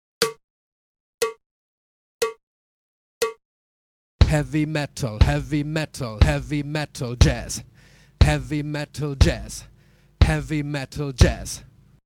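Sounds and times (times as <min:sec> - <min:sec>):
drum kit practice: 0:04.2 - 0:11.9.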